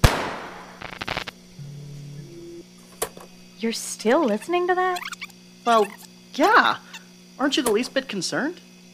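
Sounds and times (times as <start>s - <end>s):
pistol gunshot: 0.0s - 0.8s
low humming tone: 0.6s - 6.3s
speech: 3.6s - 8.7s.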